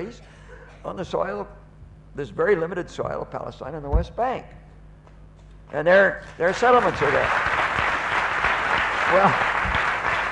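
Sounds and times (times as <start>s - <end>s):
speech: 0.0s - 4.6s, 5.7s - 7.5s, 9.1s - 9.5s
audience clapping at a political talk: 6.5s - 10.3s.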